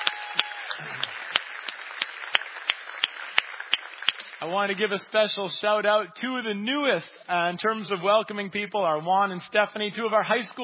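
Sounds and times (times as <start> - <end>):
audience applause for the First Impressions team: 0.0 - 5.2
speech: 4.4 - 10.6.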